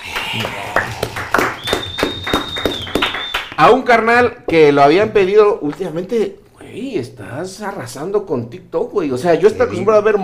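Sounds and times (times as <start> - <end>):
small audience applause: 0.0 - 3.6
speech: 0.4 - 1.1, 3.6 - 10.2
steady high-pitched whistle: 1.6 - 3.6.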